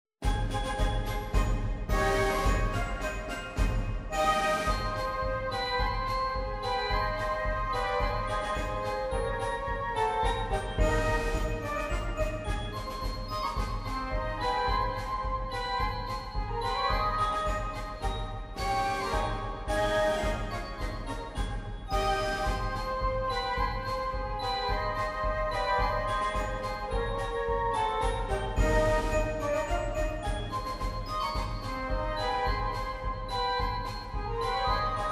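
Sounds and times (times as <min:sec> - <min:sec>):
march music: 0:00.2 - 0:35.1.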